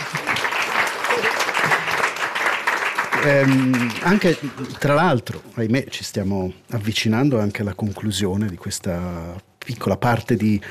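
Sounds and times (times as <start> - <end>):
audience applause after a talk on power and resistance: 0.0 - 5.2
speech: 3.2 - 10.6.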